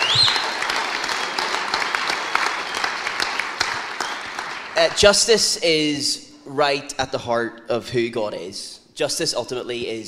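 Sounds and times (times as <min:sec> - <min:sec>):
whistle: 0:00.0 - 0:01.4
audience applause: 0:00.0 - 0:05.2
speech: 0:04.8 - 0:10.0.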